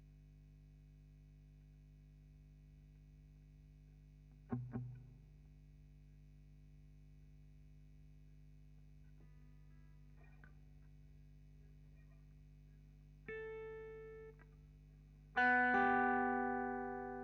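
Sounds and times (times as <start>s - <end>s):
guitar recorded with Royer microphone: 4.4s - 5.2s, 9.1s - 11.0s, 11.6s - 14.7s, 15.3s - 17.2s.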